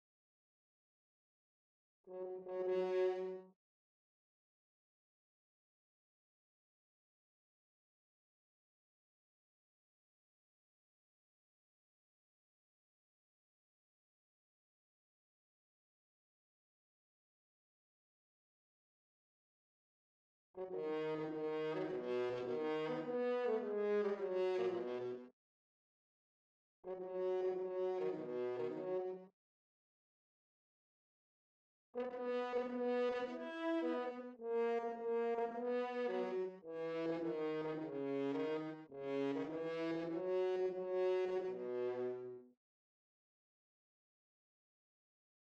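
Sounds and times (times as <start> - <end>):
horn: 2.1 - 3.5, 20.6 - 25.3, 26.8 - 29.3, 32.0 - 42.5.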